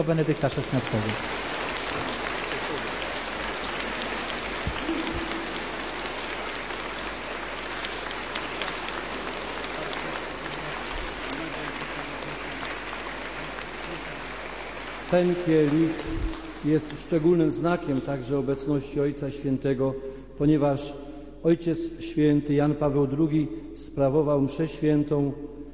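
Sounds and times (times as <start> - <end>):
speech: 0.0 - 2.2, 15.1 - 25.5
crowd applause: 0.0 - 17.9.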